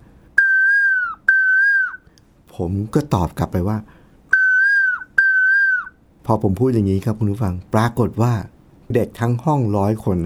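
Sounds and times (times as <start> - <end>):
whistled imitation of a koel call: 0.4 - 2.1, 4.3 - 6.0
speech: 2.6 - 4.0, 6.3 - 10.2.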